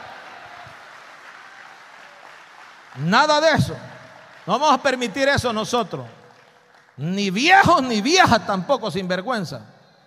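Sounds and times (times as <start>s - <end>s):
church audience clapping: 0.0s - 7.9s
speech: 3.0s - 3.9s, 4.5s - 6.2s, 7.0s - 9.7s.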